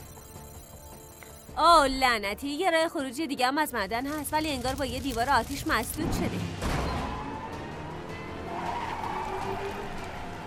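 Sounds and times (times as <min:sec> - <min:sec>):
speech: 0:01.6 - 0:06.6
race car engine roar in a race: 0:06.5 - 0:10.4
race car tires skidding and squealing: 0:06.6 - 0:10.4.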